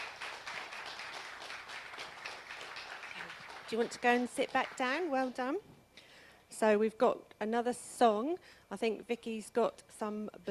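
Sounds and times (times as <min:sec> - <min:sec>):
audience applauding: 0:00.0 - 0:05.3
speech: 0:03.7 - 0:05.7, 0:06.5 - 0:10.4.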